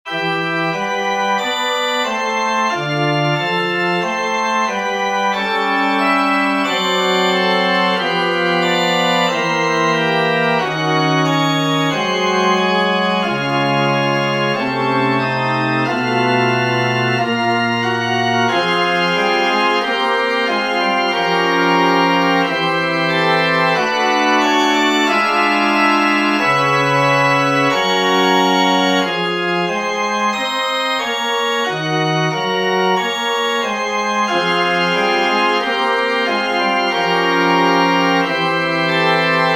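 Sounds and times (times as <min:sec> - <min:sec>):
musical interlude: 0:00.1 - 0:39.5.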